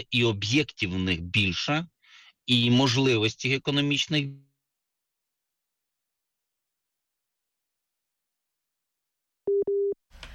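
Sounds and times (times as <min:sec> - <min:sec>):
speech: 0:00.0 - 0:01.9, 0:02.5 - 0:04.5
phone busy tone after call connection dropped: 0:09.5 - 0:10.0.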